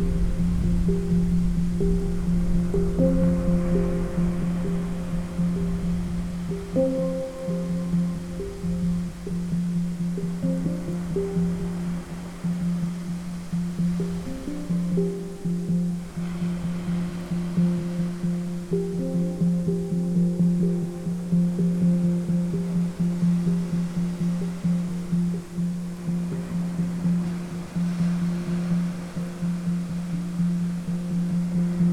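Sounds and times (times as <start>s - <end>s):
gentle thunderstorm: 0.0s - 10.0s
hang drum playing new age music: 0.0s - 31.9s
ocean waves: 0.0s - 31.9s.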